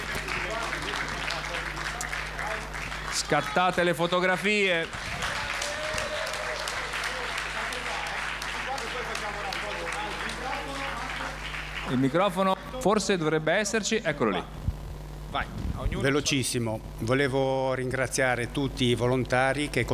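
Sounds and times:
audience applause: 0.0s - 12.8s
speech: 3.3s - 5.1s, 11.9s - 14.6s, 15.3s - 19.9s.

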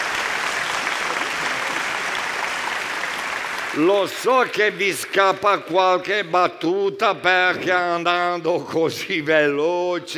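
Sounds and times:
audience applause: 0.0s - 5.7s
speech: 3.7s - 10.1s.

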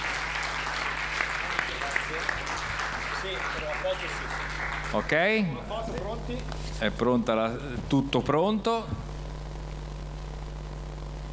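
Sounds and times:
audience applause: 0.0s - 5.6s
speech: 3.8s - 9.1s.

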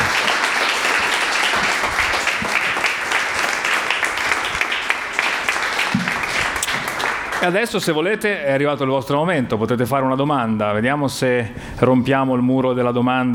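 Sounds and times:
audience applause: 0.0s - 7.8s
speech: 7.4s - 13.3s.

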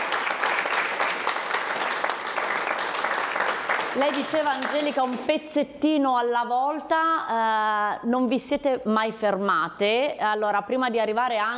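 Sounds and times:
audience applause: 0.0s - 5.3s
speech: 4.0s - 11.5s.

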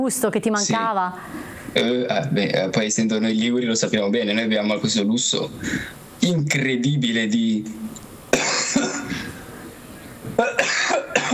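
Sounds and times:
speech: 0.0s - 9.2s
harsh human coughing: 8.3s - 9.4s, 10.4s - 11.3s.

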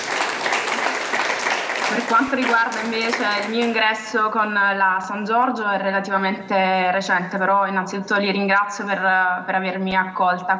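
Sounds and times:
audience applause: 0.0s - 3.8s
speech: 1.9s - 10.5s.

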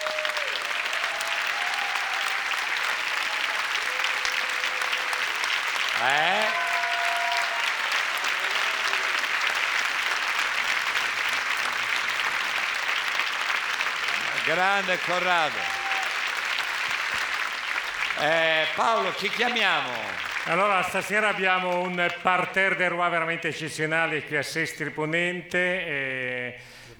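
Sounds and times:
whistles and cheers: 0.0s - 9.4s, 15.1s - 16.6s
audience applause: 0.0s - 22.8s
speech: 6.0s - 6.4s, 14.5s - 15.8s, 18.2s - 26.9s.

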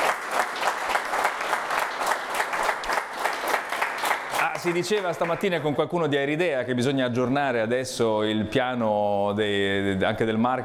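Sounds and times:
audience applause: 0.0s - 5.6s
speech: 4.6s - 10.6s.

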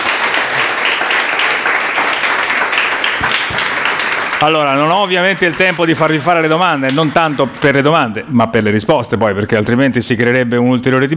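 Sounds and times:
audience applause: 0.0s - 8.2s
speech: 4.4s - 11.1s.

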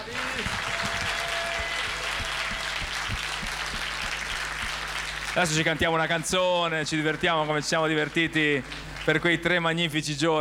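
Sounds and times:
applause: 0.0s - 6.2s, 7.0s - 9.8s
speech: 5.4s - 10.3s.

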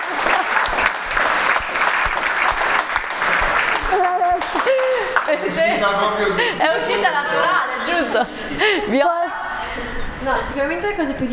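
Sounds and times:
audience applause: 0.0s - 5.7s
laughter: 0.0s - 10.4s
speech: 5.5s - 9.2s, 9.8s - 11.3s.

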